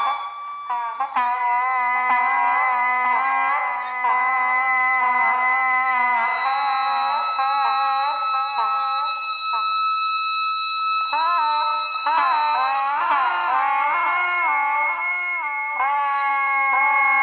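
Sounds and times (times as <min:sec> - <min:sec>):
bagpipe: 0:00.0 - 0:17.2.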